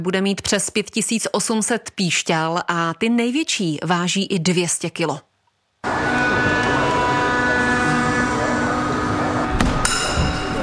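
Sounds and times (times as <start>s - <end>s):
speech: 0.0s - 5.3s
crawler construction crane engine droning in a cathedral: 5.8s - 10.6s
metallic clanks: 9.6s - 10.6s.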